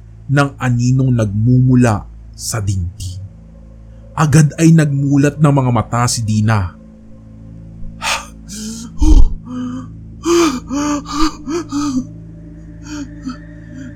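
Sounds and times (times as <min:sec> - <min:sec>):
speech: 0:00.3 - 0:03.2, 0:04.2 - 0:06.8
woman gasping and panting awake: 0:08.0 - 0:12.1.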